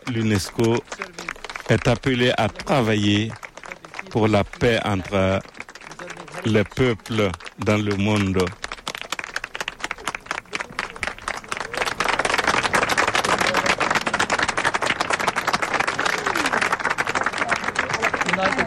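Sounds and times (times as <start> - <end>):
large crowd applauding: 0.0 - 18.6
speech: 0.1 - 1.1, 1.7 - 3.4, 4.1 - 5.5, 6.4 - 8.6.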